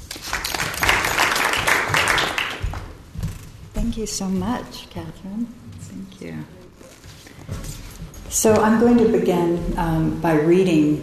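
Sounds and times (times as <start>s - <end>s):
audience applause welcoming a poet to a reading: 0.0s - 2.9s
speech: 3.9s - 6.6s, 8.3s - 11.0s.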